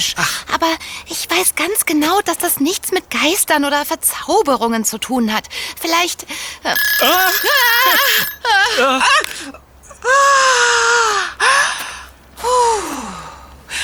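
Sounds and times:
speech: 0.0 - 13.8
kitchen egg timer ringing: 6.8 - 8.5.

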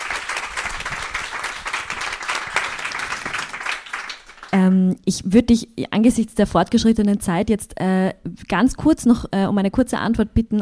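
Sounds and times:
audience applause: 0.0 - 4.7
speech: 4.6 - 10.5.

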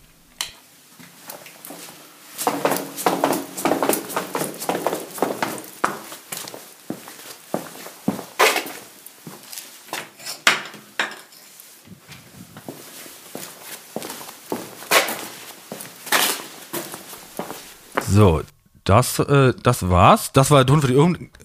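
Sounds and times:
sneaker footsteps on sandy cellar floor: 1.0 - 10.0, 12.3 - 18.2
speech: 18.2 - 21.4.

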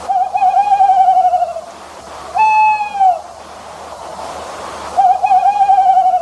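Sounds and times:
faint steady hiss: 0.0 - 6.1
owl hooting: 0.1 - 1.7, 2.4 - 3.3, 5.0 - 6.1.

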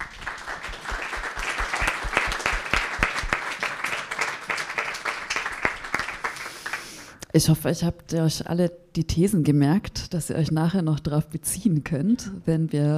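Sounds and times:
audience applause: 0.0 - 7.1
speech: 7.4 - 12.9.

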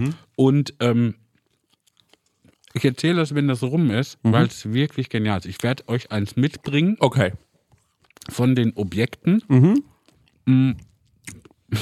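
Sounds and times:
speech: 0.0 - 1.2, 2.8 - 7.5, 8.2 - 11.8
people chewing sweet chips: 1.3 - 3.0, 7.8 - 11.8.

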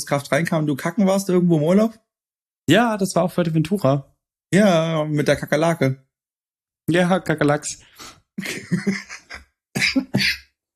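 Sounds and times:
speech: 0.0 - 2.0, 2.7 - 6.0, 6.9 - 9.2
laughter: 8.4 - 9.4
smoker's cough: 9.8 - 10.6.

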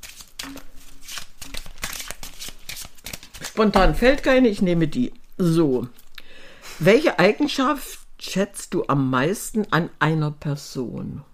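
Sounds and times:
deck of question cards shuffled by hand: 0.0 - 4.3
speech: 3.6 - 6.0, 6.8 - 11.3.

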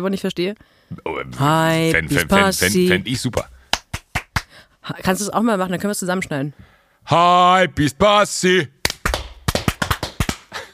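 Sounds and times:
speech: 0.0 - 3.5, 4.8 - 8.8
hand clapping: 3.3 - 4.5, 8.8 - 10.7.

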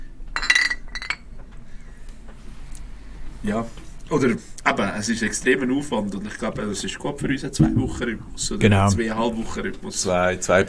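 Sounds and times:
low hum: 0.0 - 10.6
beer glasses clinking in a toast: 0.4 - 1.2
speech: 3.4 - 10.6.

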